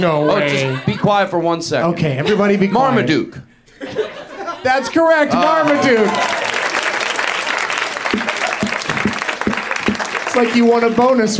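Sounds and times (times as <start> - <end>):
laughter: 0.0 - 1.4, 2.0 - 6.7
speech: 0.0 - 4.0, 4.6 - 6.4, 10.4 - 11.3
applause: 5.3 - 11.3.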